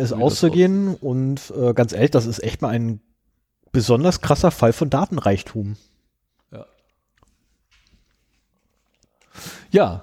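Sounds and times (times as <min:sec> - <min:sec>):
speech: 0:00.0 - 0:03.1, 0:03.7 - 0:05.9, 0:06.5 - 0:06.7, 0:09.4 - 0:10.0
chewing liquorice: 0:06.3 - 0:09.4.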